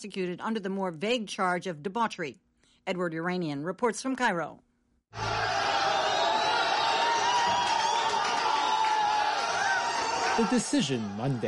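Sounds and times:
speech: 0.0s - 5.6s, 10.4s - 11.4s
onlookers cheering: 5.1s - 11.4s
applause in a courtroom: 5.2s - 11.4s.

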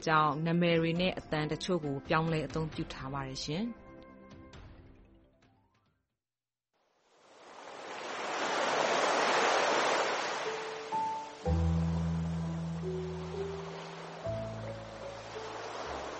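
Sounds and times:
speech: 0.0s - 3.8s
ocean waves at Pelican Beach in Myanmar: 7.0s - 16.1s.

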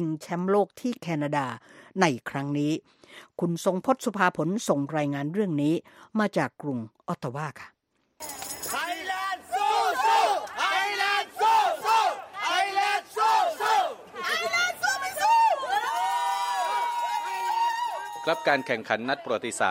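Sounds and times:
speech: 0.0s - 8.4s, 18.3s - 19.6s
football fans cheering and chanting: 8.8s - 19.6s.

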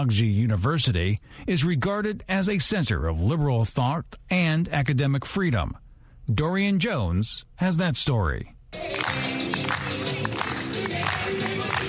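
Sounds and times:
speech: 0.0s - 9.3s
group clapping along to music: 8.8s - 11.8s
lively music: 8.8s - 11.8s.

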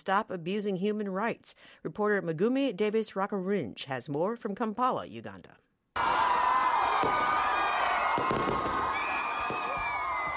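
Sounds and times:
speech: 0.0s - 6.2s, 7.0s - 7.4s
crowd cheering: 6.0s - 10.3s
new year fireworks in Kampala: 7.0s - 10.3s.

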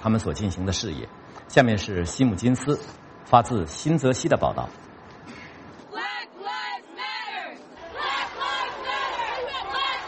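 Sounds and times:
speech: 0.0s - 4.9s
crowd chanting at a Black Lives Matter protest march in New Jersey: 5.9s - 10.0s.

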